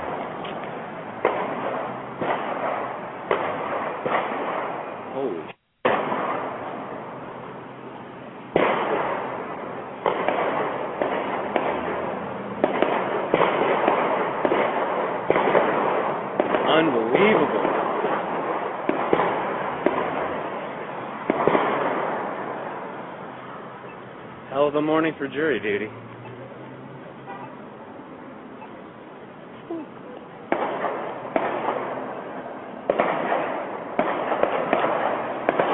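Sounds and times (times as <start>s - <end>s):
gunshots outside a Las Vegas courthouse: 1.2s - 7.0s, 8.5s - 22.8s, 30.5s - 35.7s
speech: 24.7s - 26.0s.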